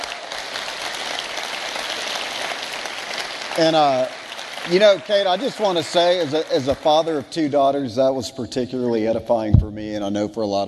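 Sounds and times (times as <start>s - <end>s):
round of applause: 0.0s - 7.8s
speech: 3.6s - 10.6s.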